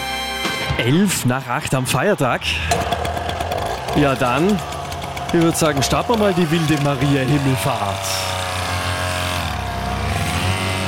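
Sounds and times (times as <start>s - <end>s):
speech: 0.8s - 3.0s, 4.0s - 8.4s
Vespa scooter engine revving at a Vespa and Lambretta club summer festival: 2.5s - 10.8s.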